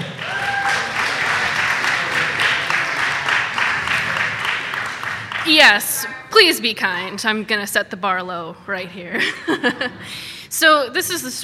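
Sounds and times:
audience applause: 0:00.0 - 0:06.0
laughter: 0:00.8 - 0:04.8, 0:09.1 - 0:10.2
speech: 0:05.5 - 0:11.4.

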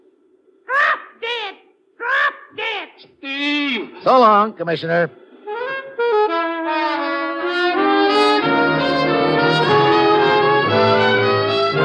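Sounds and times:
faint steady hum: 0:00.0 - 0:11.8
parrot squawking speech-like calls: 0:00.7 - 0:03.1
speech: 0:03.3 - 0:05.2.

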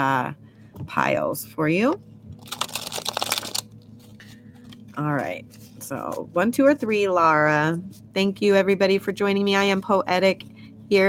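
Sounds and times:
speech: 0:00.0 - 0:02.6, 0:05.0 - 0:11.0
playing cards riffle shuffling: 0:02.4 - 0:04.9.

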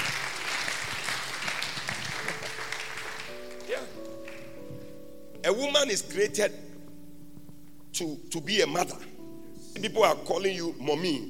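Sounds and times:
audience applause: 0:00.0 - 0:04.5
speech: 0:05.5 - 0:06.7, 0:08.0 - 0:09.1, 0:09.8 - 0:11.2.

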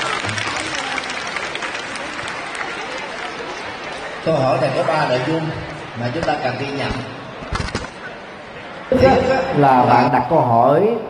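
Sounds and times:
audience applause: 0:00.0 - 0:04.2
speech: 0:04.2 - 0:07.2, 0:08.9 - 0:11.0.

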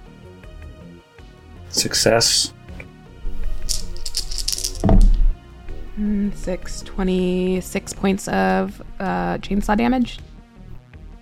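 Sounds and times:
speech: 0:01.7 - 0:02.6, 0:06.0 - 0:10.3
low hum: 0:03.2 - 0:10.8
dice rattling: 0:03.3 - 0:05.4.

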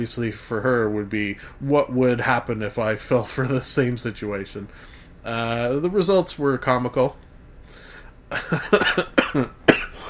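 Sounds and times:
speech: 0:00.0 - 0:07.2, 0:08.3 - 0:09.6
person with a cold coughing: 0:08.3 - 0:10.0.

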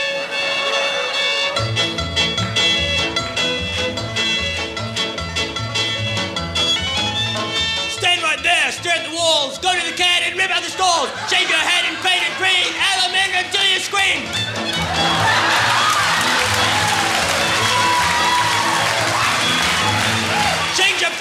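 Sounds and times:
laughter: 0:00.0 - 0:01.8, 0:09.7 - 0:20.6
punk square dance song: 0:00.0 - 0:21.2
speech: 0:13.4 - 0:15.6.

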